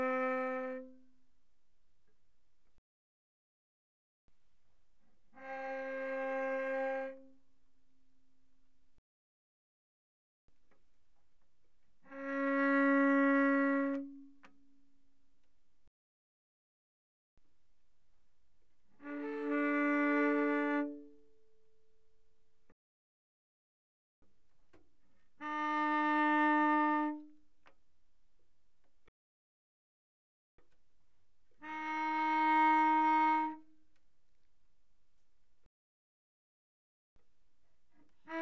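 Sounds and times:
cello arco pianissimo on the G string: 0.0 - 1.3, 5.1 - 8.0, 11.8 - 14.9, 18.8 - 21.6, 25.3 - 27.4, 31.6 - 33.7, 37.9 - 38.3.

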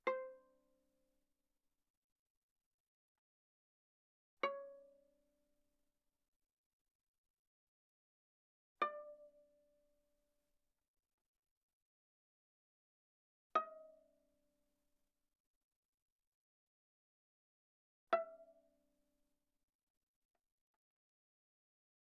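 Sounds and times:
viola pizzicato on the A string: 0.0 - 0.5, 4.4 - 5.1, 8.8 - 9.6, 18.1 - 18.6.

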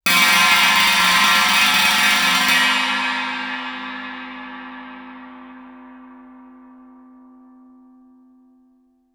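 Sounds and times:
Chinese stick roll on suspended cymbals: 0.0 - 6.3.

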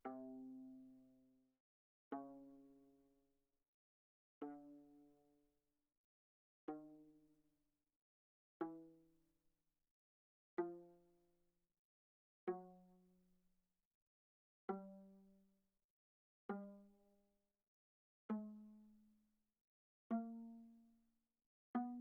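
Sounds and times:
soft viola pizzicato on the C string: 0.0 - 1.2, 4.4 - 5.2, 6.7 - 7.1, 8.6 - 9.0, 10.6 - 11.1, 12.5 - 12.8, 14.7 - 15.4, 16.5 - 17.0, 20.1 - 20.8, 21.7 - 22.0.

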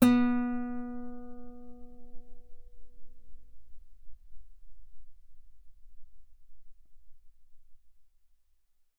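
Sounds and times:
guitar note B3 played fortissimo on the B string: 0.0 - 2.5.

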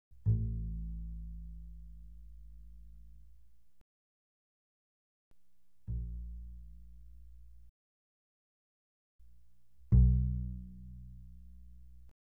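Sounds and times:
double bass pizzicato on the A string: 0.2 - 3.2, 5.9 - 7.7, 9.8 - 12.1.

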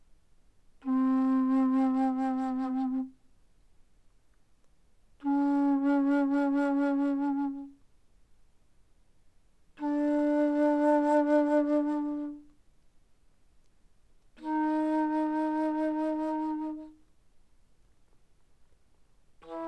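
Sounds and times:
bass flute played mezzo-forte: 0.8 - 3.2, 5.2 - 7.8, 9.8 - 12.5, 14.4 - 17.0, 19.4 - 19.6.

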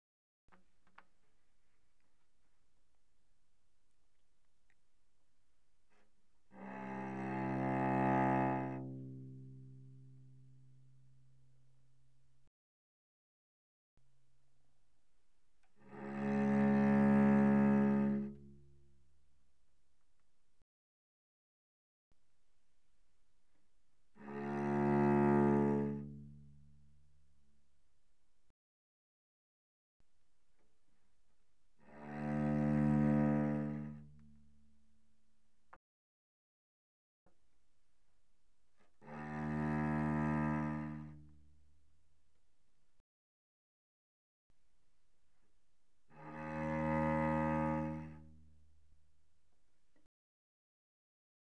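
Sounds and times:
cello played arco pianissimo sul C: 5.9 - 12.2, 15.6 - 19.0, 24.0 - 27.2, 31.7 - 34.4, 38.8 - 41.6, 46.0 - 48.9.

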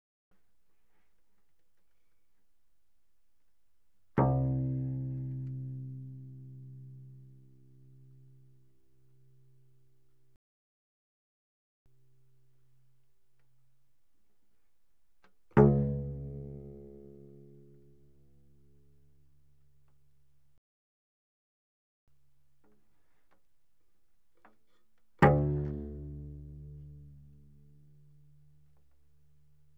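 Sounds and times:
cello pizzicato fortissimo on the C string, C2 to A2: 4.1 - 9.4, 15.2 - 20.2, 24.4 - 29.7.

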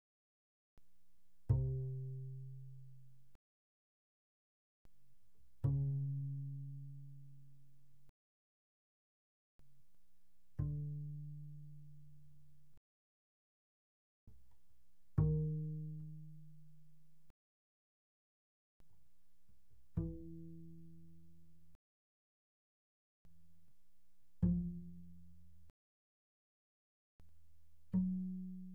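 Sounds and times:
double bass pizzicato on the D string: 1.5 - 3.2, 5.6 - 8.1, 10.5 - 12.8, 15.1 - 17.2, 19.8 - 21.8, 24.4 - 25.7, 27.8 - 28.7.

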